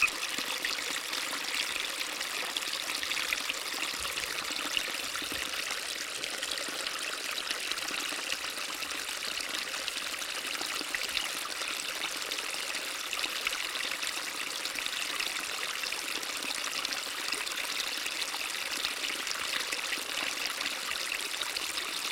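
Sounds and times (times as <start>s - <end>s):
frog calling: 0.0s - 0.4s
creek flowing: 0.0s - 22.1s.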